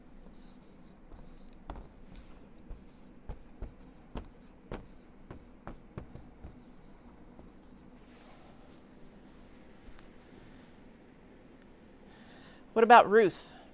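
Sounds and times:
writing on a board: 0:00.2 - 0:07.9
speech: 0:12.7 - 0:13.5.

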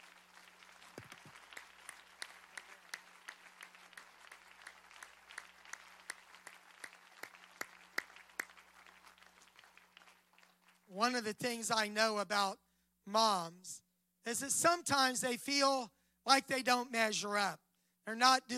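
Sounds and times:
audience applauding: 0:00.0 - 0:11.3
speech: 0:11.0 - 0:18.5.

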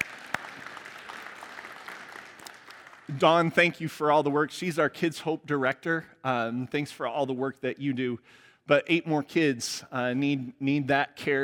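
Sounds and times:
audience applauding: 0:00.0 - 0:03.5
speech: 0:03.1 - 0:11.4.

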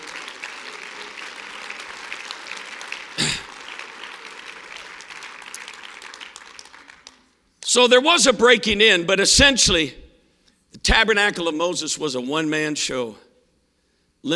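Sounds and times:
audience clapping hands: 0:00.0 - 0:07.7
speech: 0:07.7 - 0:10.0, 0:11.0 - 0:13.3.

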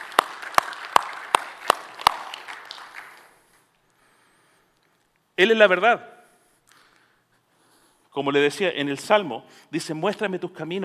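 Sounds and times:
audience applause: 0:00.0 - 0:03.5
loud claps: 0:00.0 - 0:03.6
speech: 0:05.4 - 0:06.2, 0:08.2 - 0:10.8.

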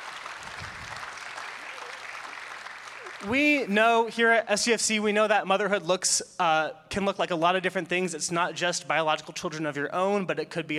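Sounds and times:
audience applause: 0:00.0 - 0:03.8
speech: 0:03.2 - 0:10.7.

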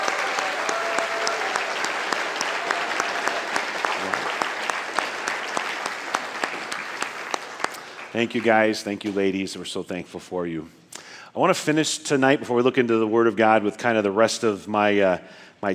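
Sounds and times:
audience applause: 0:00.0 - 0:08.8
speech: 0:08.2 - 0:10.8, 0:11.4 - 0:15.7.

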